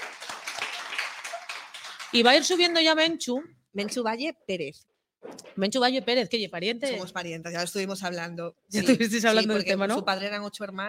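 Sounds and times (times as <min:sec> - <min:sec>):
audience applause: 0:00.0 - 0:02.5
speech: 0:02.1 - 0:10.8.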